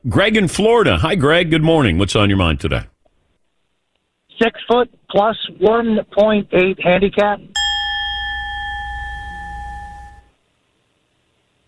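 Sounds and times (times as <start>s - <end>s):
speech: 0.0s - 2.9s, 4.4s - 7.6s
big bell ringing: 7.6s - 10.3s.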